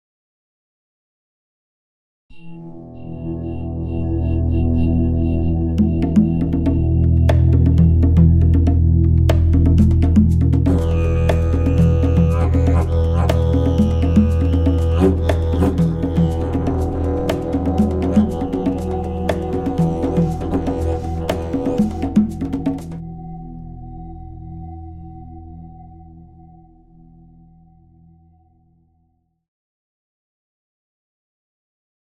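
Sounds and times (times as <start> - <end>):
lyre: 2.3 - 24.0.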